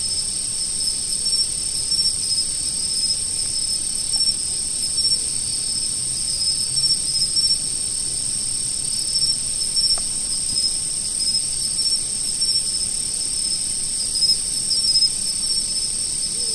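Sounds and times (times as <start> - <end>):
autumn insects: 0.0 - 16.5.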